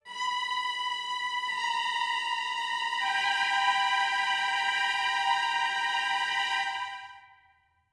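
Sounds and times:
strings: 0:00.0 - 0:07.3.

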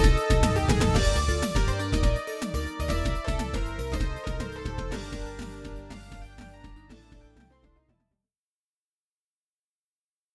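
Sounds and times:
kick drum: 0:00.0 - 0:07.4.

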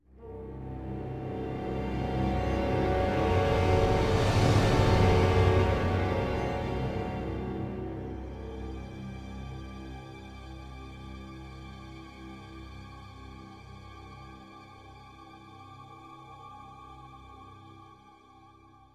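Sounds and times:
riser sweep: 0:02.0 - 0:08.2.

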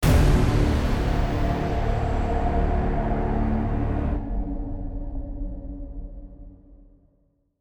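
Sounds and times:
boss combat music stinger: 0:00.0 - 0:04.2.

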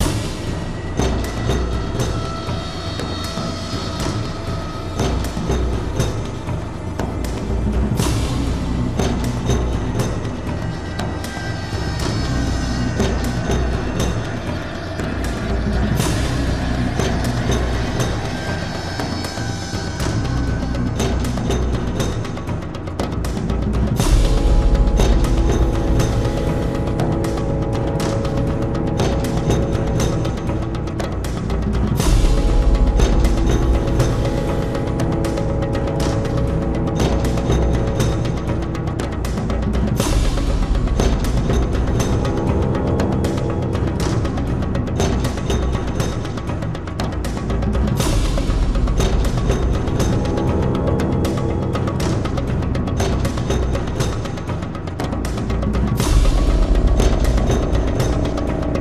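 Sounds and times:
percussion cluster soundtrack: 0:00.0 - 0:58.8.

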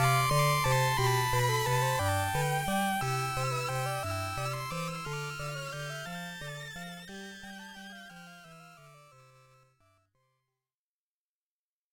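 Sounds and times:
magical waltz music: 0:00.0 - 0:09.5.

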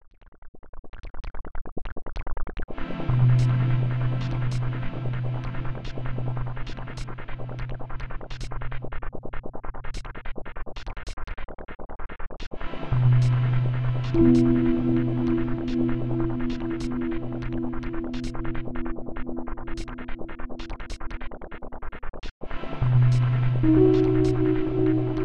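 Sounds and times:
in-game background music: 0:02.7 - 0:08.8, 0:12.6 - 0:21.2, 0:22.4 - 0:25.2.

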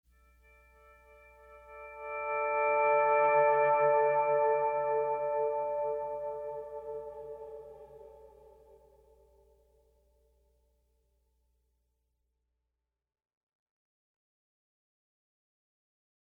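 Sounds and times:
pleasant guitar playing: 0:01.1 - 0:08.7.

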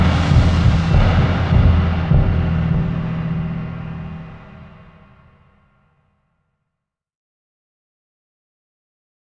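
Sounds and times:
Mongolian battle drums: 0:00.0 - 0:04.9.

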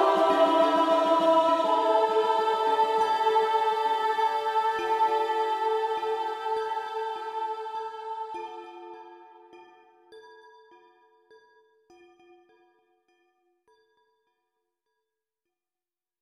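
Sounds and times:
fanfare: 0:00.0 - 0:08.4.

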